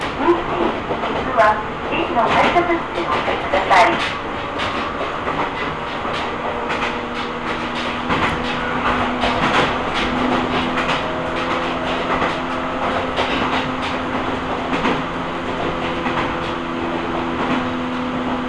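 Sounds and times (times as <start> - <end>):
Ohmi Railway train carriage rumble: 0.0 - 18.4
wheels clacking on rails: 0.0 - 18.4
sustained whining tone: 5.9 - 13.2.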